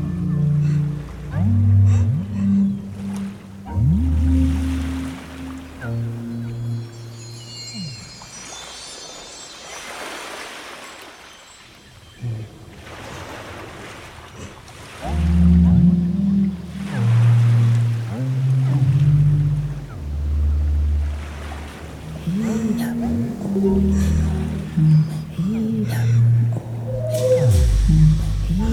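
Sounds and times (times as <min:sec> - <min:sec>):
synthesizer: 0:00.0 - 0:11.7, 0:15.0 - 0:28.7
breathing: 0:00.6 - 0:01.0, 0:22.1 - 0:28.7.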